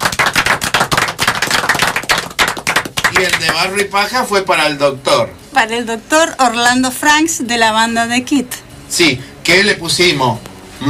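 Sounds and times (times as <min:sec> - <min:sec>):
audience applause: 0:00.0 - 0:03.8
speech: 0:03.2 - 0:10.8.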